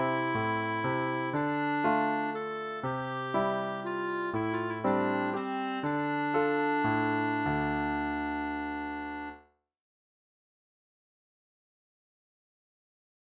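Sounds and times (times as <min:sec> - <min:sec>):
clarinet solo: 0:00.0 - 0:09.4.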